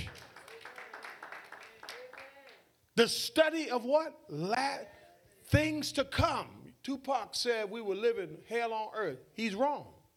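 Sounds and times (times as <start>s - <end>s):
crowd clapping hands in praise: 0.0s - 2.7s
speech: 3.0s - 10.0s.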